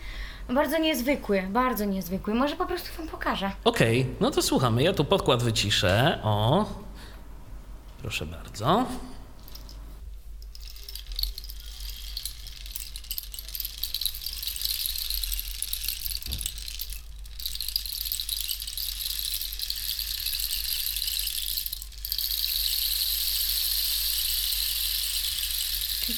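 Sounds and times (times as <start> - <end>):
speech: 0.5 - 6.8, 8.0 - 9.1
rain stick imitating tropical rain: 9.4 - 26.1.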